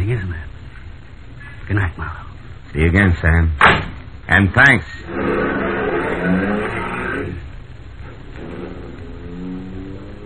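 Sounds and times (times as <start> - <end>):
speech: 0.1 - 0.6, 1.7 - 5.6, 6.2 - 6.8
car driving away: 5.1 - 10.2.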